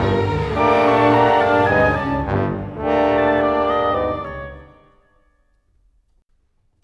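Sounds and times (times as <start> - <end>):
cinematic orchestra: 0.0 - 4.9.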